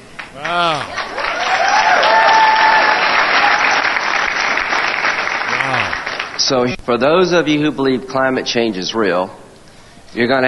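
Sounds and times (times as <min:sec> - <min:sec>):
town hall audience clapping: 0:00.0 - 0:06.6
voices cheering: 0:00.3 - 0:06.4
speech: 0:00.4 - 0:01.0, 0:06.5 - 0:09.4, 0:10.1 - 0:10.4.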